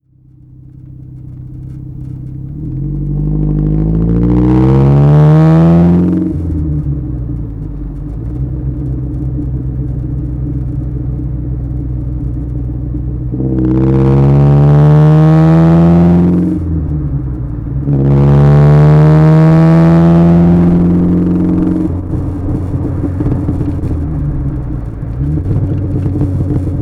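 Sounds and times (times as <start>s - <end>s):
Alfa Romeo Spider with Weber twin carburettors exhaust driving downhill: 0.0s - 26.8s.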